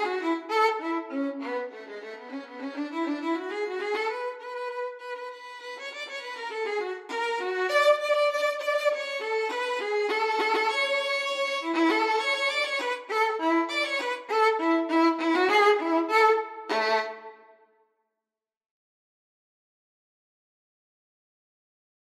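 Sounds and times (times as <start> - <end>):
violin duet: 0.0 - 17.4.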